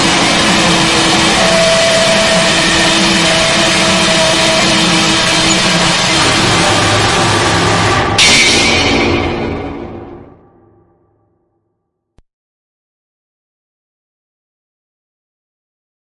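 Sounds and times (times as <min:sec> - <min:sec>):
industrial strength cinematic noise: 0:00.0 - 0:11.3.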